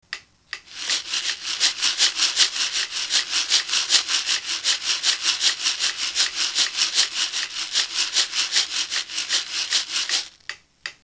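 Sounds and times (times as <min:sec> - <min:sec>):
rhythm: 0:00.7 - 0:10.4.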